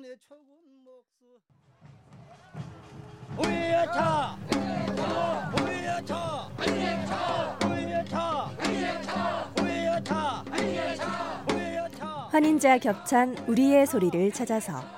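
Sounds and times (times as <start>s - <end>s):
speech: 0.0s - 11.2s, 12.3s - 14.9s
crowd chanting tug-of-war folk song: 2.0s - 14.9s
sharp percussive beats: 2.1s - 14.9s.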